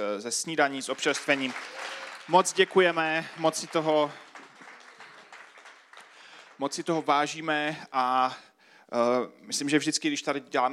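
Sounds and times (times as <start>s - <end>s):
speech: 0.0s - 4.3s, 6.6s - 10.7s
applause: 0.7s - 7.3s.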